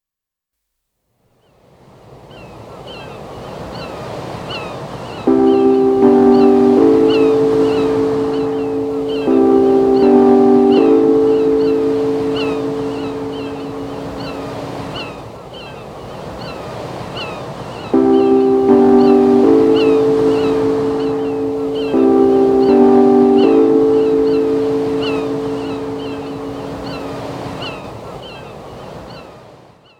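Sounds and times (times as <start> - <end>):
relaxing music: 5.3 - 15.1, 18.0 - 27.8.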